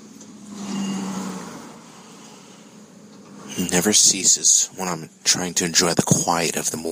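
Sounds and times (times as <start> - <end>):
vehicle passing by on road: 0.0 - 4.6
speech: 3.6 - 6.8.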